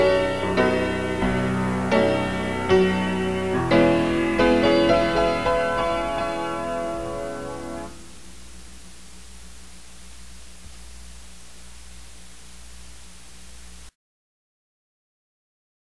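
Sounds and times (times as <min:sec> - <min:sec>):
piano: 0:00.0 - 0:08.6.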